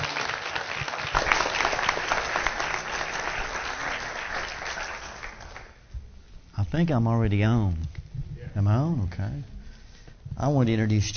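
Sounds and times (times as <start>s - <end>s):
audience applause welcoming a pastor to the stage: 0.0s - 5.8s
speech: 6.7s - 7.9s, 8.5s - 9.6s, 10.4s - 11.1s.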